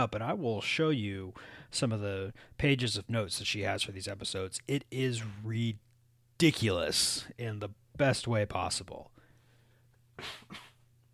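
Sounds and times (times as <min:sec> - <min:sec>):
speech: 0:00.0 - 0:09.1, 0:10.2 - 0:10.6
person coughing: 0:10.2 - 0:10.8.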